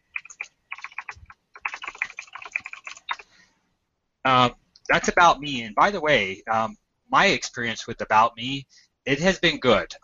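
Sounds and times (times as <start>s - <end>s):
rapid typing on a computer keyboard: 0.0s - 3.3s
speech: 4.2s - 10.0s.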